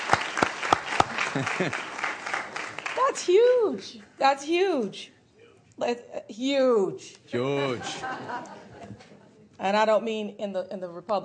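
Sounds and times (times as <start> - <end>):
audience applause: 0.0 - 3.2
laughter: 1.1 - 2.0, 7.4 - 9.5
speech: 1.4 - 1.9, 3.0 - 5.2, 5.8 - 11.2.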